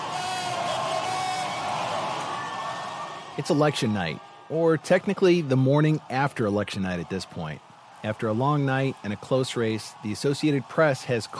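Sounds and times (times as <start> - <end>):
crowd at the Orpheum Theater in downtown Madison cheering wildly: 0.0 - 11.3
speech: 3.4 - 11.3.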